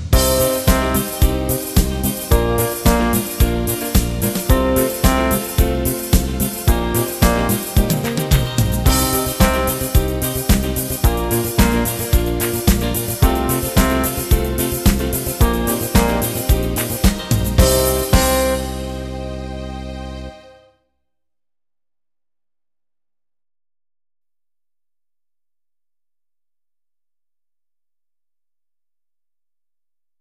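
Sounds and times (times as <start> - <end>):
trombone: 0.2 - 20.6
trumpet: 0.2 - 20.7.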